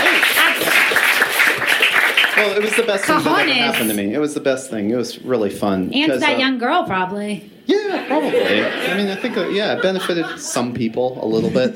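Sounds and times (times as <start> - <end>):
round of applause: 0.0 - 4.0
speech: 2.4 - 11.7
laughter: 7.7 - 11.7.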